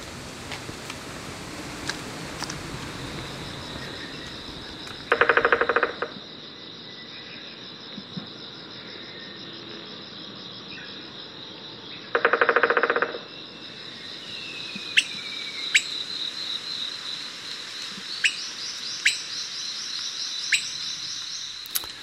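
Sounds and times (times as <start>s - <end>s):
high insect drone: 0.0s - 22.0s
Okinawa woodpecker drumming: 4.9s - 6.2s, 12.1s - 13.2s
Okinawa woodpecker calling: 5.0s - 6.2s, 12.1s - 13.2s, 14.8s - 16.0s, 18.2s - 19.5s, 20.4s - 22.0s.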